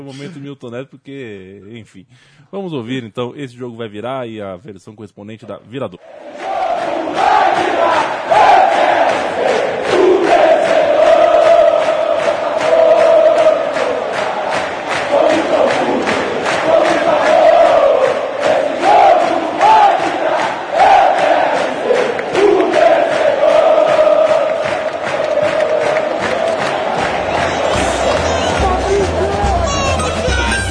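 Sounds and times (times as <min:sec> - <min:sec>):
speech: 0:00.0 - 0:06.4
football fans chanting in stadium: 0:06.0 - 0:30.6.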